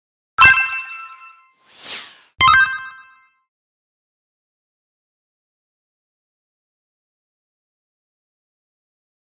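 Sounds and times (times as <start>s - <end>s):
alert sounds: 0.4s - 3.3s.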